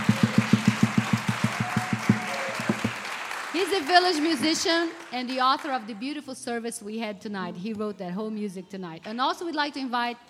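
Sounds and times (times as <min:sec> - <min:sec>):
audience applause: 0:00.0 - 0:05.4
speech: 0:03.6 - 0:10.2.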